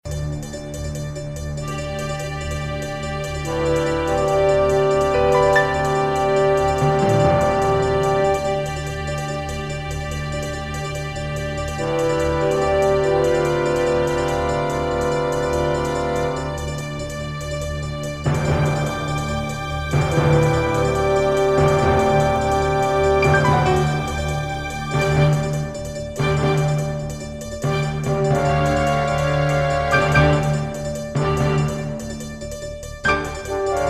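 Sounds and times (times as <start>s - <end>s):
dramatic orchestral music: 0.2s - 33.8s.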